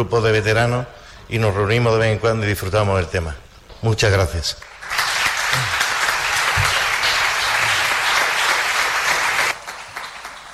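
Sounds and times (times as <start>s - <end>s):
speech: 0.0s - 4.7s
sustained audience applause: 4.6s - 10.5s.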